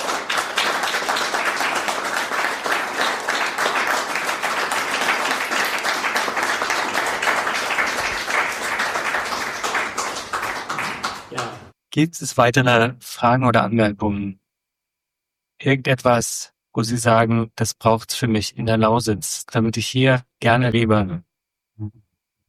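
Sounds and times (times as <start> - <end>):
audience applause: 0.0 - 11.7
speech: 12.0 - 14.4, 15.6 - 22.0.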